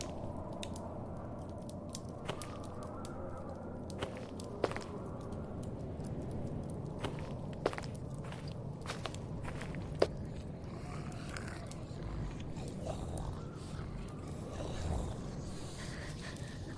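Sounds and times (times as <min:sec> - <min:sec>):
crunchy snaps: 0:00.0 - 0:16.7
zombie wet chewing and biting: 0:06.2 - 0:16.6.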